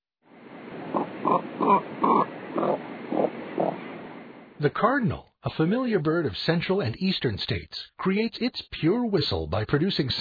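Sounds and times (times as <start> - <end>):
cormorant low hoarse grunting calls: 0.9 - 3.8
speech: 4.6 - 10.1.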